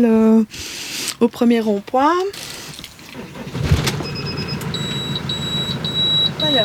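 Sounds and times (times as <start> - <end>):
speech: 0.0 - 2.6, 6.4 - 6.6
camper van engine starting and pulling away: 1.2 - 6.6
thin high electronic beeps: 4.0 - 6.6.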